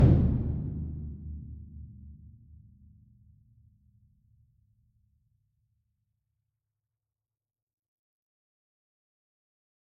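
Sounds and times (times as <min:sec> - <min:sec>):
concert bass drum roll: 0:00.0 - 0:01.5.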